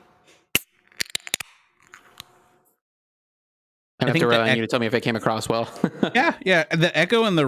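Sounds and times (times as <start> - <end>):
beer can being cracked open: 0.5 - 2.3
laughter: 4.0 - 7.1
speech: 4.0 - 7.4.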